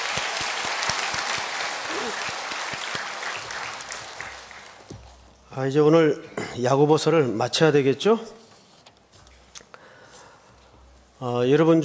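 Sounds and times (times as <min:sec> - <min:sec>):
audience applause: 0:00.0 - 0:04.9
speech: 0:05.6 - 0:08.4, 0:11.2 - 0:11.8.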